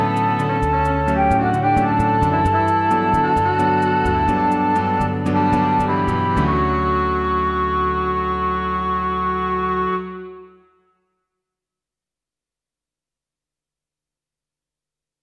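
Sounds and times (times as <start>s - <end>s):
cafe music without drums: 0.0s - 10.6s.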